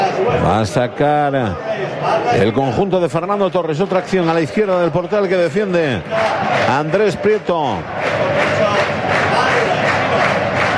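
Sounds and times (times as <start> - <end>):
speech: 0.3 - 8.6
stadium crowd applauding: 2.4 - 10.7.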